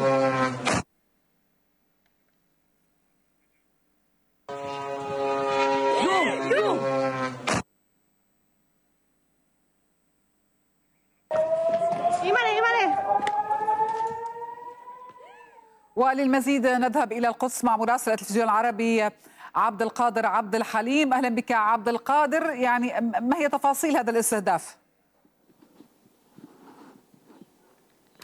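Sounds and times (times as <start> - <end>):
Hezbollah drone buzzing: 0.0 - 0.8, 4.5 - 7.6, 11.3 - 16.0
warning sirens wailing: 4.5 - 6.9, 11.3 - 16.3
speech: 16.1 - 24.8.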